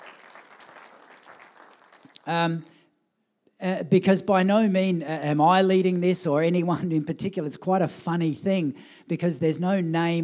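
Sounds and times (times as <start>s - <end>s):
audience clapping: 0.0s - 2.3s
speech: 2.3s - 2.8s, 3.6s - 10.2s.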